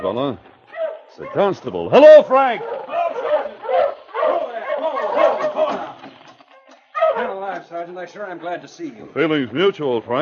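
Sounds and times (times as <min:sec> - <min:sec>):
speech: 0:00.0 - 0:00.5, 0:01.1 - 0:02.8, 0:07.6 - 0:10.2
sled dogs barking: 0:00.0 - 0:07.6.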